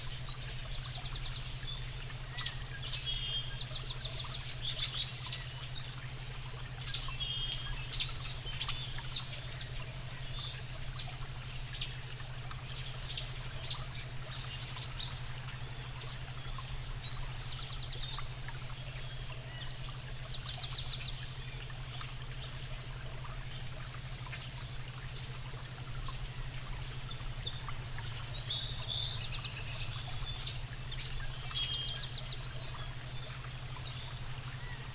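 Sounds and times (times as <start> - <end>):
forest relaxation sound bath with alpha waves: 0.0 - 34.9.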